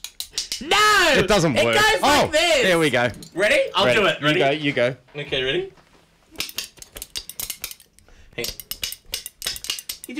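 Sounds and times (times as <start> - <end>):
speech: 0.6 - 5.8, 8.4 - 8.6
two metal spoons played as percussion: 2.9 - 3.8, 6.4 - 10.1.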